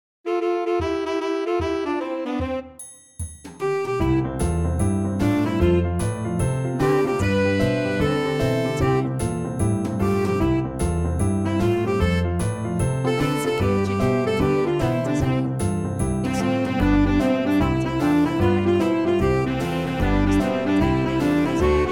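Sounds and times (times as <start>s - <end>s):
instrumental music without vocals: 0.3s - 21.9s.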